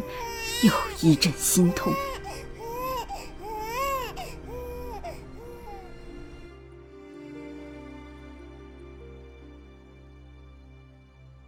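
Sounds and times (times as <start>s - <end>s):
infant wailing: 0.0s - 6.2s
speech: 0.1s - 2.1s.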